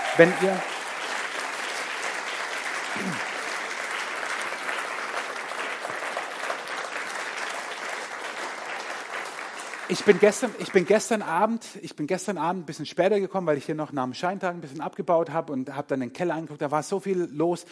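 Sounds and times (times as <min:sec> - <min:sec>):
audience applause: 0:00.0 - 0:11.4
speech: 0:00.2 - 0:00.7, 0:09.9 - 0:17.7.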